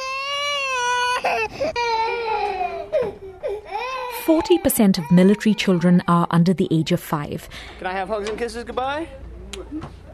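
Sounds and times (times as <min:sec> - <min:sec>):
baby crying: 0:00.0 - 0:06.3
speech: 0:01.2 - 0:03.1, 0:04.2 - 0:10.1.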